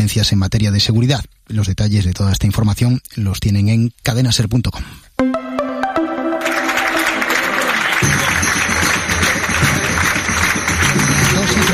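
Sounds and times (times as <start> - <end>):
speech: 0.0 - 5.3
tonal music: 5.2 - 11.4
ovation at party headquarters entrance: 5.2 - 11.7.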